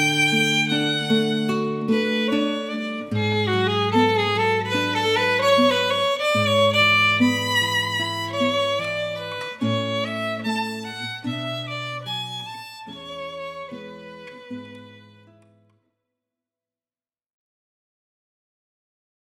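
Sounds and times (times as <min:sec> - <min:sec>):
violin: 0:00.0 - 0:15.6
guitar: 0:00.0 - 0:15.8.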